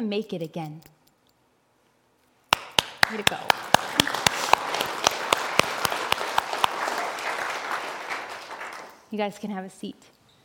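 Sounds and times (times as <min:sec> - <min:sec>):
speech: 0:00.0 - 0:00.9, 0:03.1 - 0:03.7, 0:09.1 - 0:10.2
crowd applause: 0:02.6 - 0:09.1.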